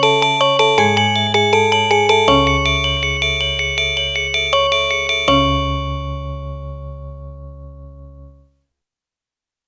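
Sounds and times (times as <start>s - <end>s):
Balinese gamelan gong kebyar music: 0.0s - 7.0s.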